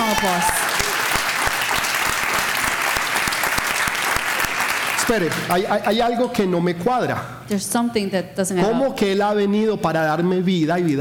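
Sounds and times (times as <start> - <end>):
strong applause from audience: 0.0 - 6.0
speech: 0.2 - 0.6, 5.1 - 10.9.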